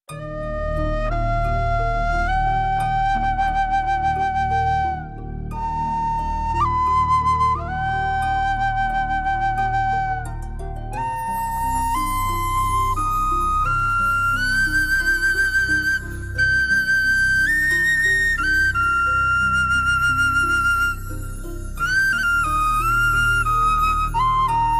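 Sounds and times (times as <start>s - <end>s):
flute melody: 0.1s - 24.7s.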